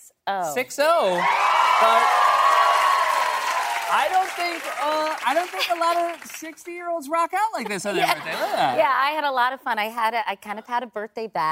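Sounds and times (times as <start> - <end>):
speech: 0.3 - 2.4, 3.9 - 11.5
audience applause: 1.1 - 6.8
laughter: 7.6 - 8.8.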